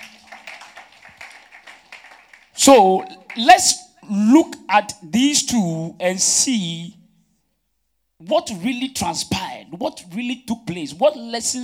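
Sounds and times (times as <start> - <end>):
crowd clapping: 0.0 - 3.9
speech: 2.6 - 7.0, 8.2 - 11.6.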